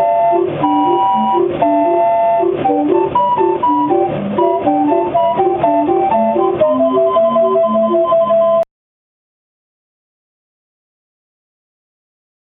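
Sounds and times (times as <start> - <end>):
calliope: 0.0 - 8.6.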